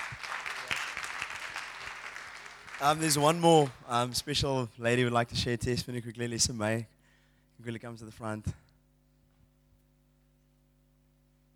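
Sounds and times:
church congregation giving a round of applause: 0.0 - 4.1
speech: 2.8 - 7.0, 7.6 - 8.6.

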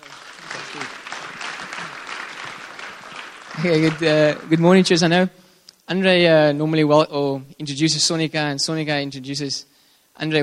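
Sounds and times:
church congregation applauding to welcome a speaker: 0.0 - 5.4
speech: 3.6 - 10.4.

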